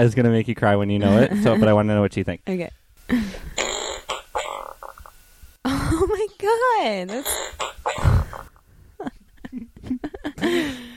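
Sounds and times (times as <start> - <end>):
speech: 0.0 - 3.6, 6.4 - 7.5, 10.4 - 10.9
fart sound effect: 3.4 - 5.1, 7.1 - 8.5.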